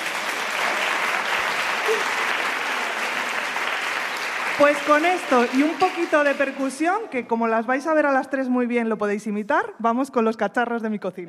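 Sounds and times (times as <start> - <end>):
audience applause: 0.0 - 6.9
speech: 1.9 - 2.2, 4.6 - 11.2.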